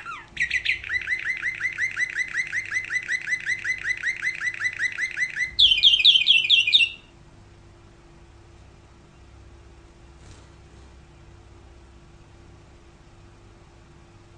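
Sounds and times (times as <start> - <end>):
canary rolling trill: 0.0 - 7.2.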